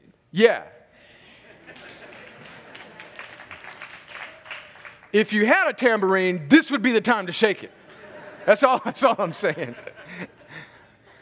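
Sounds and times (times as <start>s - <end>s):
speech: 0.3s - 0.8s, 5.1s - 7.8s, 8.4s - 10.3s
laughter: 1.3s - 4.6s, 7.6s - 11.1s
single person clapping: 1.6s - 5.2s.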